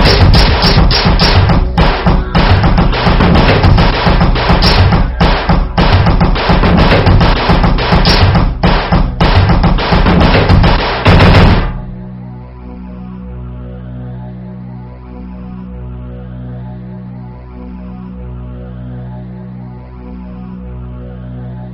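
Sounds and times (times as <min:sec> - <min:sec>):
speed metal drums: 0:00.0 - 0:11.9.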